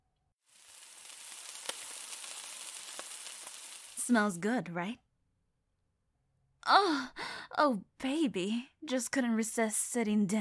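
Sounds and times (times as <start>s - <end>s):
breakfast frying in a pan: 0.4s - 4.4s
speech: 4.1s - 5.0s, 6.6s - 10.4s.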